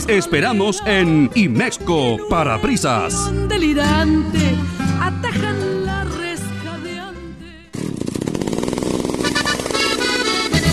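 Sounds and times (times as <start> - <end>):
speech: 0.0 - 5.5
chainsaw engine revving in a chainsaw dealer advertisement: 7.7 - 10.7.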